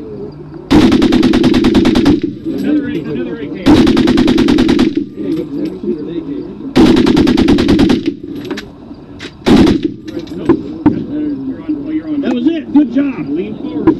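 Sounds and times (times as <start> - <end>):
murmuring voices: 0.0 - 0.7, 2.4 - 13.9
water-cooled .30 machine gun firing: 0.7 - 2.6, 3.6 - 5.3, 6.8 - 8.4, 9.4 - 10.1.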